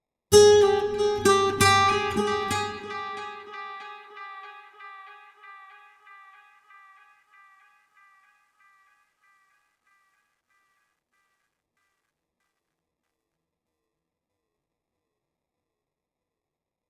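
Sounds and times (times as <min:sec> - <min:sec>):
acoustic guitar one-shot: 0:00.4 - 0:05.8.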